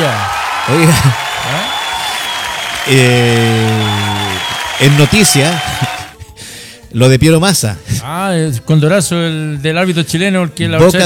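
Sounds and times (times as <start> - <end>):
applause: 0.0 - 6.1
speech: 0.1 - 1.8, 2.9 - 4.1, 4.8 - 6.0, 6.9 - 11.0.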